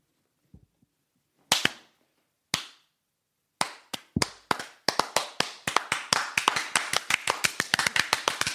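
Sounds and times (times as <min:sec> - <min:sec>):
slow clap: 0:01.5 - 0:03.0, 0:03.6 - 0:08.5.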